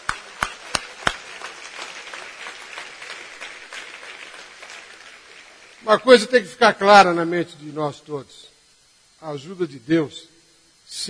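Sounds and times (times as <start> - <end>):
audience applause: 0.0 - 6.2
speech: 5.8 - 8.5, 9.2 - 10.3.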